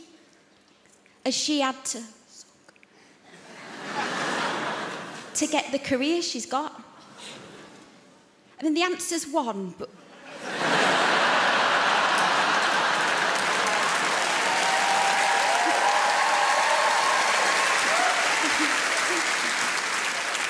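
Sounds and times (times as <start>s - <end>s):
speech: 1.2s - 2.2s, 5.4s - 6.9s, 8.6s - 10.0s
laughter: 3.4s - 5.3s, 10.1s - 16.1s, 17.4s - 20.2s
audience applause: 10.4s - 20.4s.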